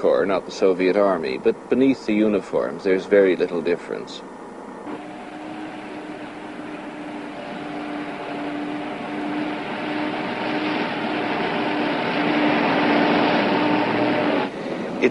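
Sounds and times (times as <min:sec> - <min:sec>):
speech: 0:00.0 - 0:04.4
bus engine rumbling: 0:04.7 - 0:15.0.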